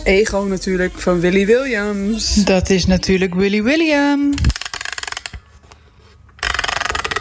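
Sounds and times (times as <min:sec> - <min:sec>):
speech: 0:00.0 - 0:04.6
music box being wound up: 0:04.4 - 0:05.4, 0:06.4 - 0:07.1.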